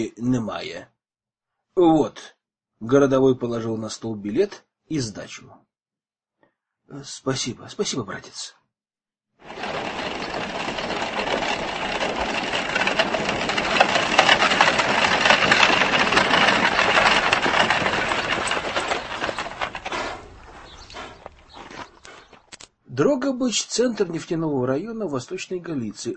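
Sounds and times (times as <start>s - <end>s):
speech: 0.0s - 0.9s, 1.8s - 5.6s, 6.9s - 8.6s, 22.9s - 26.1s
slow freight-passenger train running: 9.4s - 21.3s.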